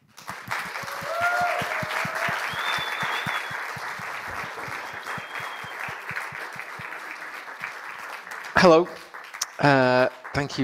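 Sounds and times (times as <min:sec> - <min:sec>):
audience applause welcoming a speaker at a talk: 0:00.0 - 0:10.6
speech: 0:08.6 - 0:09.0, 0:09.6 - 0:10.6.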